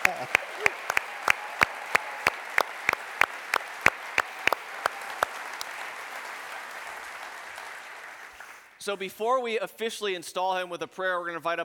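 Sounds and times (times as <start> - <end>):
sharp evenly spaced claps: 0.0 - 8.7
audience applause: 0.0 - 8.8
speech: 8.8 - 11.6.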